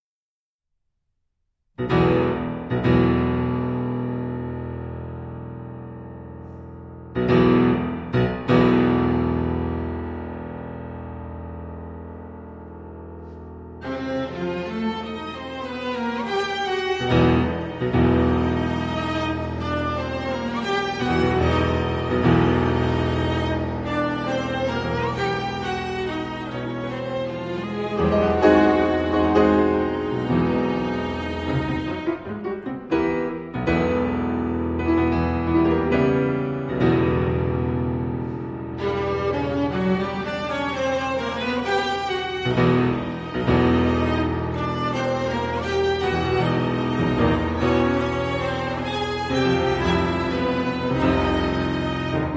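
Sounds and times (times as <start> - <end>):
piano quintet: 1.8 - 52.3.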